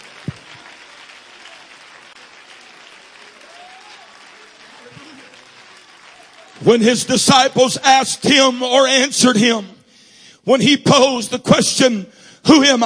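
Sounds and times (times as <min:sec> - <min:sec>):
audience clapping hands: 0:00.0 - 0:08.9
speech: 0:06.6 - 0:09.7, 0:10.4 - 0:12.8.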